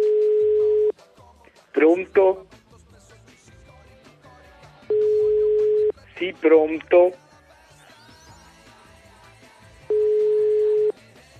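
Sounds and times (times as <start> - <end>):
telephone ringing: 0.0 - 0.9, 4.9 - 6.7, 9.9 - 10.9
speech: 1.8 - 2.6, 6.2 - 7.2.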